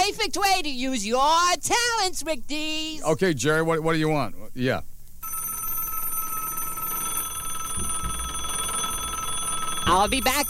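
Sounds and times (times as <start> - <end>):
speech: 0.1 - 4.9, 9.9 - 10.4
electronic telephone ring: 5.2 - 10.4.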